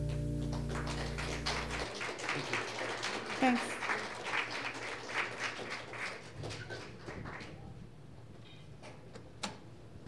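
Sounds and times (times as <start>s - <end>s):
audience applause: 0.1s - 7.6s
speech: 3.5s - 3.7s.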